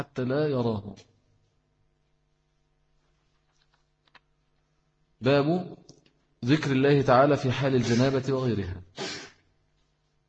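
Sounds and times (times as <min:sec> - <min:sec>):
speech: 0:00.0 - 0:01.1, 0:05.2 - 0:09.2
person sneezing: 0:07.8 - 0:08.2, 0:09.0 - 0:09.4.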